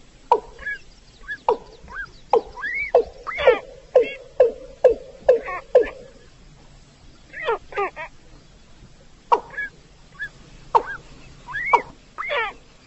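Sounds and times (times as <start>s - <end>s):
rail nasal calls: 0.4s - 6.4s, 9.3s - 12.7s.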